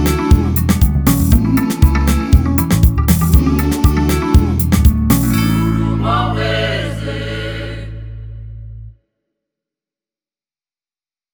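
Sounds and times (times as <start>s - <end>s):
groove music: 0.0s - 6.7s.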